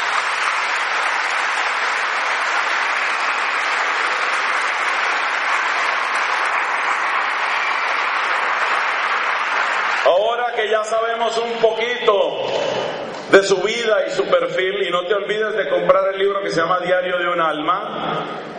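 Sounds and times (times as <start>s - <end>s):
warm applause from large audience: 0.0s - 11.6s
speech: 10.6s - 18.5s.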